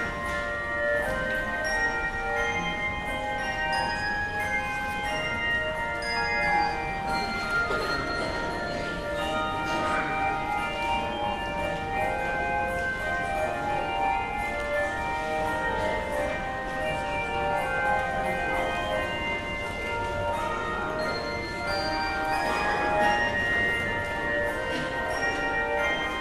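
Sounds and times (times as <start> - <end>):
handbells ringing: 0.0 - 26.1.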